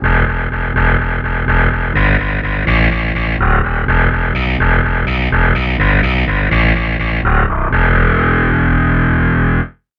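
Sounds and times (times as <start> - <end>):
distorted guitar: 0.0 - 9.8
bass: 0.0 - 9.9.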